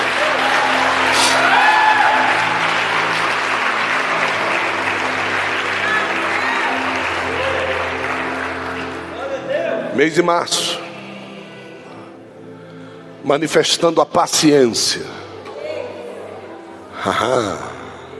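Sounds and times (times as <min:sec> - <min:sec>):
audience applause: 0:00.0 - 0:09.3
speech: 0:10.0 - 0:10.8, 0:13.3 - 0:15.3, 0:17.0 - 0:17.7.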